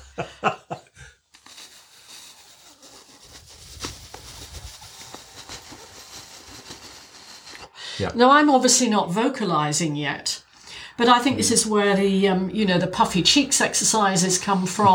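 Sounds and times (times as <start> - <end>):
laughter: 0.0 - 1.1
speech: 0.2 - 0.6, 8.0 - 10.4, 11.0 - 14.9
lip buzzes like a vocal fart: 1.3 - 7.8.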